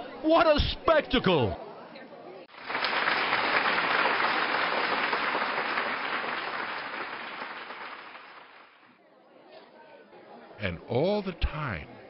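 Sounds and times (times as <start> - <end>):
speech: 0.2 - 1.6, 10.6 - 12.0
large crowd applauding: 2.5 - 8.9.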